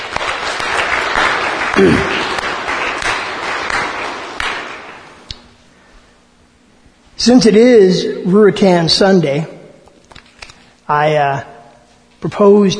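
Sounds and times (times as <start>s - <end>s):
crowd clapping: 0.0s - 5.6s
speech: 1.8s - 2.2s, 7.2s - 9.5s, 10.9s - 11.5s, 12.2s - 12.7s.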